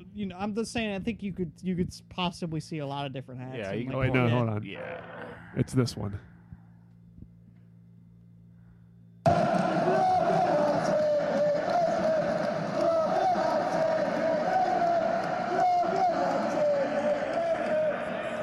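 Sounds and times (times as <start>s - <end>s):
speech: 0.2s - 6.3s
huge soccer crowd chanting in unison: 9.3s - 18.4s.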